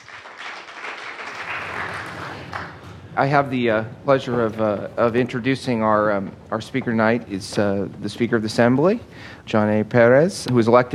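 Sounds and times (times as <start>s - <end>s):
audience applause welcoming a speaker at an evening event: 0.0s - 2.9s
speech: 3.2s - 10.9s.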